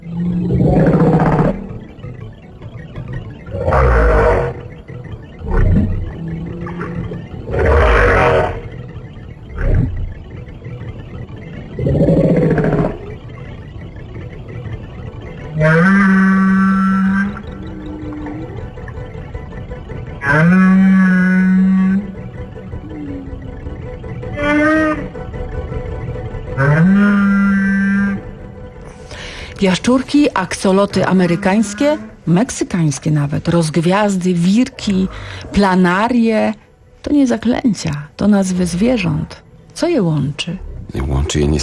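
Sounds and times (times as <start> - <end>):
whale calls: 0.0 - 36.5
speech: 29.6 - 41.6.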